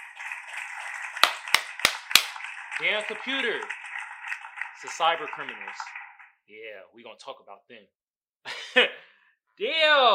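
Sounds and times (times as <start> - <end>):
hand clap sound effect: 0.5 - 6.2
speech: 2.8 - 3.8, 4.8 - 9.0, 9.6 - 10.1.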